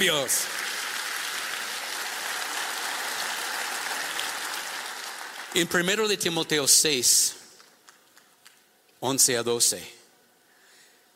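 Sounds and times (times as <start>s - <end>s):
speech: 0.0s - 0.6s, 5.5s - 7.4s, 9.0s - 10.0s
audience applauding: 0.0s - 6.1s.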